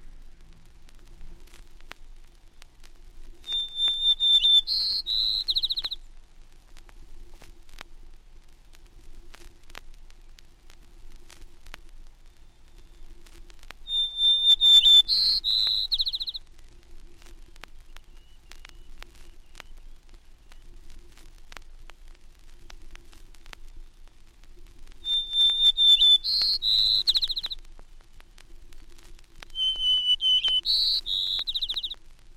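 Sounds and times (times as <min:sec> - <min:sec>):
faint hiss: 0:00.0 - 0:32.3
white-crowned sparrow song: 0:03.4 - 0:06.0, 0:13.8 - 0:16.5, 0:17.8 - 0:20.7, 0:25.0 - 0:27.6, 0:29.5 - 0:32.0.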